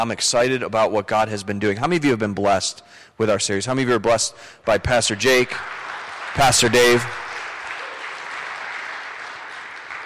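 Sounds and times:
speech: 0.0 - 7.2
audience clapping: 4.8 - 10.0.

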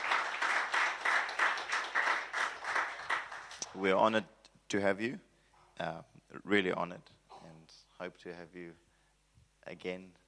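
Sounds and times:
crowd applauding: 0.0 - 3.8
speech: 3.8 - 8.8, 9.6 - 10.2.

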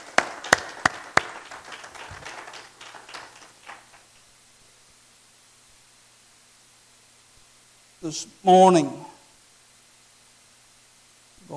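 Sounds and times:
audience clapping hands: 0.0 - 4.3
speech: 8.0 - 9.0.

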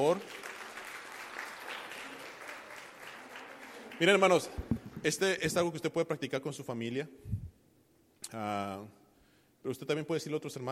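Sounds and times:
speech: 0.0 - 0.4, 4.0 - 7.4, 8.3 - 9.0, 9.6 - 10.6
audience applause: 0.1 - 5.3.

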